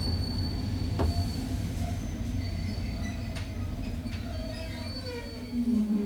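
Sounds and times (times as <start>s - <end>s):
electric train starting: 0.0s - 5.9s.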